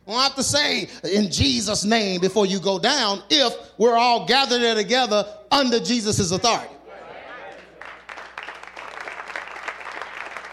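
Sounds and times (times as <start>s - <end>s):
speech: 0.1s - 6.8s
thin scattered hand claps from audience: 7.6s - 10.5s.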